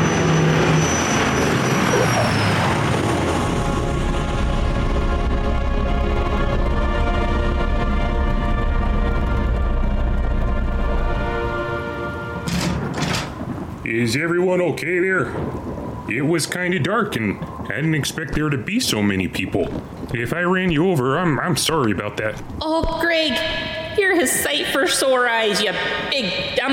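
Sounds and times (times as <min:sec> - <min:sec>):
Ford Tri-Motor propeller airplane flying: 0:00.0 - 0:13.8
speech: 0:14.1 - 0:26.7.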